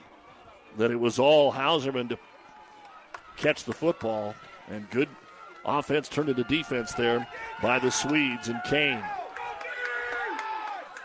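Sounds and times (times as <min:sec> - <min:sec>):
stadium crowd cheering: 0:00.0 - 0:11.0
speech: 0:00.8 - 0:02.3, 0:03.4 - 0:09.2.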